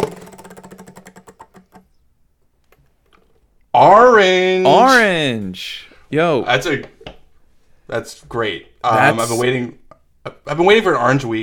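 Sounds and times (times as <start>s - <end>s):
spinning prize wheel clicking as it turns: 0.0s - 1.8s
speech: 3.8s - 6.9s, 7.9s - 11.4s.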